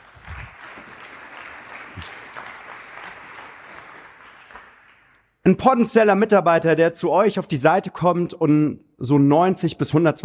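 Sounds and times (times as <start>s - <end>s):
applause: 0.0s - 5.4s
speech: 5.5s - 10.2s.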